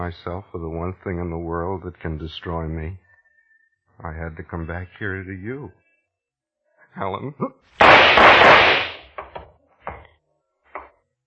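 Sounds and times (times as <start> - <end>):
speech: 0.0 - 3.0, 4.0 - 5.8, 6.9 - 8.8
gunshots: 7.8 - 9.1.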